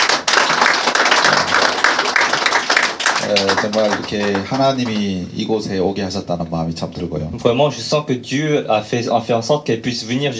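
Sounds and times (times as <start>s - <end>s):
audience applause: 0.0s - 5.1s
speech: 3.3s - 10.3s.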